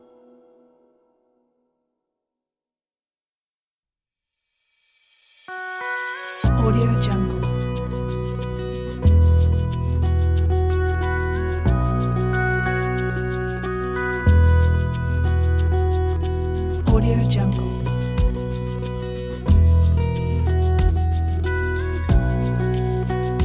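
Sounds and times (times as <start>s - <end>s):
inspiring acoustic indie folk music: 6.4s - 23.4s.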